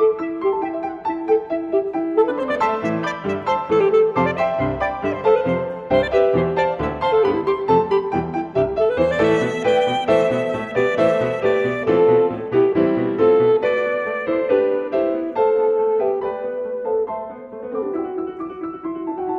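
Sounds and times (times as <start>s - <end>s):
English folk-song piece played allegro vivace: 0.2s - 19.2s.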